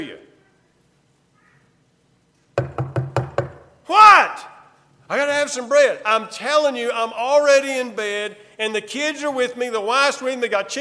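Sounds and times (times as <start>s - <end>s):
speech: 0.0s - 0.3s, 5.1s - 10.8s
knocking on a door: 2.6s - 3.7s.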